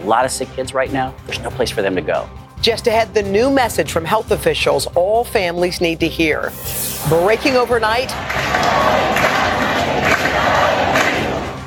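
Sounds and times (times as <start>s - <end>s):
speech: 0.1s - 9.3s
protest crowd chanting and shouting: 8.1s - 11.6s.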